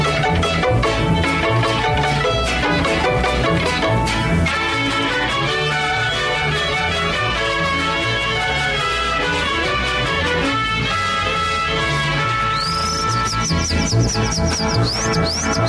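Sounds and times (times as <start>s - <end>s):
music with sustained instrumental tones: 0.0s - 15.6s
calandria lark singing: 12.5s - 15.6s.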